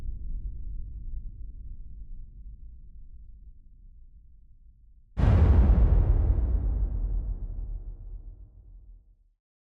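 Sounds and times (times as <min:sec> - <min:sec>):
hits: 0:05.2 - 0:08.3.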